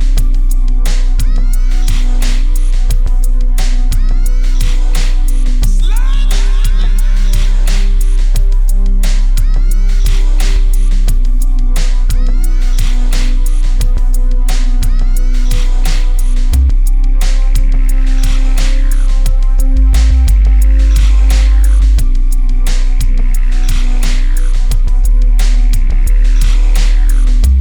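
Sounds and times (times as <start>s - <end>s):
loudspeaker bass test tone: 0.0s - 27.6s.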